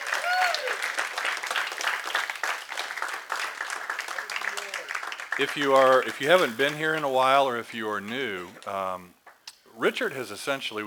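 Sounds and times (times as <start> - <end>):
audience applause: 0.0 - 7.4
speech: 5.4 - 9.2, 9.8 - 10.8.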